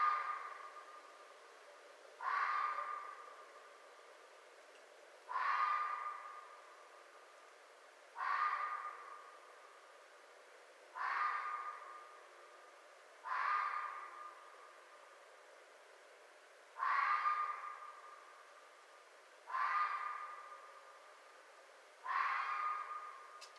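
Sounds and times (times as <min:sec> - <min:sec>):
red fox giving harsh hoarse ringing barks: 0:00.0 - 0:01.0, 0:02.2 - 0:03.5, 0:05.3 - 0:06.9, 0:08.2 - 0:09.5, 0:10.9 - 0:12.3, 0:13.2 - 0:14.6, 0:16.8 - 0:18.4, 0:19.5 - 0:21.0, 0:22.0 - 0:23.4.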